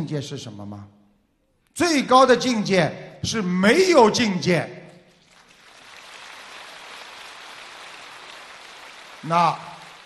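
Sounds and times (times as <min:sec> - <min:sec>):
speech: 0:00.0 - 0:01.0, 0:01.8 - 0:04.8, 0:09.2 - 0:09.7
audience applause: 0:05.2 - 0:10.0.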